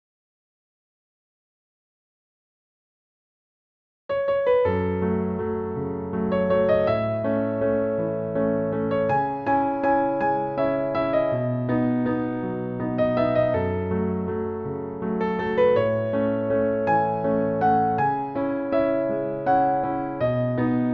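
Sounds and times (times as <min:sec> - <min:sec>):
piano: 0:04.1 - 0:20.9.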